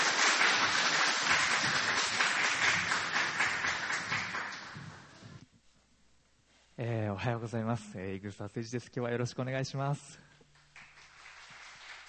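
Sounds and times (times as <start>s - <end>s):
audience applause: 0.0s - 5.1s, 10.6s - 12.0s
speech: 6.8s - 10.3s.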